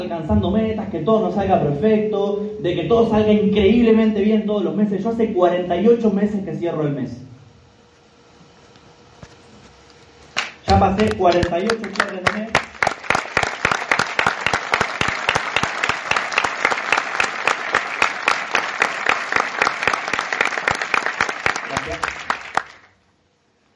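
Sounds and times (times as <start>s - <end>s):
speech: 0.0s - 7.3s, 10.7s - 12.6s
crowd applauding: 10.4s - 22.9s.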